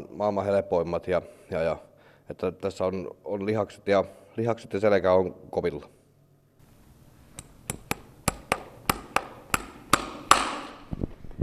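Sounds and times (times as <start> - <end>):
speech: 0.2 - 6.0
hammer driving horseshoe nails into a harness-racing gelding's hoof: 7.4 - 10.8.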